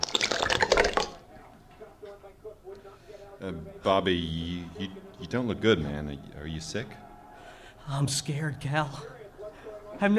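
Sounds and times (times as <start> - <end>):
shot of liquor pouring into a small glass: 0.0 - 1.2
quiet murmuring voices: 1.2 - 10.1
speech: 3.4 - 7.0, 7.9 - 9.2.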